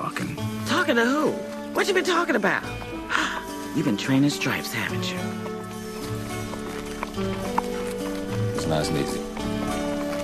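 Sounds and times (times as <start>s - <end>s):
steady sustained music: 0.0s - 10.2s
speech: 0.8s - 5.5s, 8.7s - 9.3s
saddled horse hooves clip-clopping trotting out of a barn: 5.2s - 10.2s.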